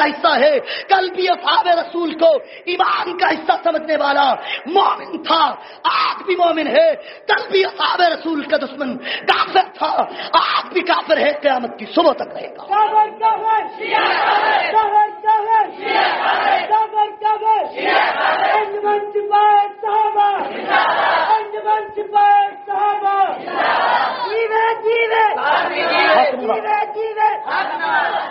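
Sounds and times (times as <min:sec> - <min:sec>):
speech: 0:00.0 - 0:28.2
crowd chanting a slogan in unison: 0:13.6 - 0:14.9, 0:15.6 - 0:16.7, 0:17.6 - 0:18.8, 0:20.3 - 0:21.6, 0:23.1 - 0:24.4, 0:25.2 - 0:26.6, 0:27.4 - 0:28.2.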